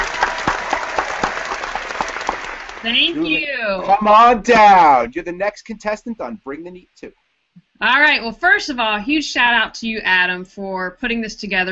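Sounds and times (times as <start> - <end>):
audience round of applause: 0.0 - 5.2
laughter: 2.8 - 7.0
speech: 2.8 - 7.2, 7.8 - 11.7.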